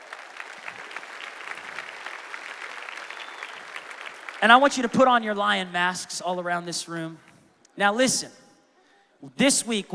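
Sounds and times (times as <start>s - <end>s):
audience applause: 0.0s - 4.7s
speech: 4.4s - 8.4s, 9.2s - 9.9s.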